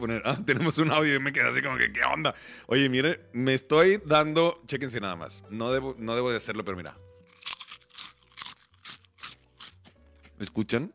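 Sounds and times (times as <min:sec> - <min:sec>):
speech: 0:00.0 - 0:07.1, 0:10.4 - 0:10.9
bites of fried pork rind chicharron: 0:07.2 - 0:10.7.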